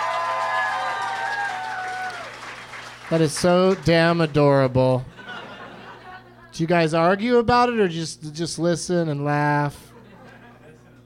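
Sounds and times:
cheering voices: 0.0s - 2.4s
audience applause: 0.0s - 4.5s
speech: 3.1s - 5.1s, 6.6s - 9.9s
laughter: 5.1s - 6.5s, 9.9s - 11.0s.

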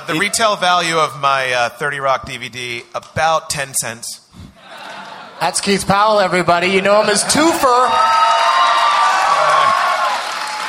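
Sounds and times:
laughter: 0.0s - 0.8s, 4.6s - 5.8s
speech: 0.0s - 4.2s, 5.4s - 8.5s
audience clapping and cheering: 7.6s - 10.6s.

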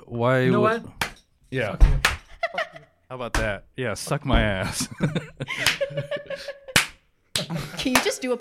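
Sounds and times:
speech: 0.1s - 2.1s, 3.1s - 6.6s, 7.5s - 8.3s
hand clap slate: 2.0s - 2.3s, 5.6s - 6.0s, 6.7s - 8.3s
laughter: 2.3s - 3.0s, 4.5s - 8.2s.

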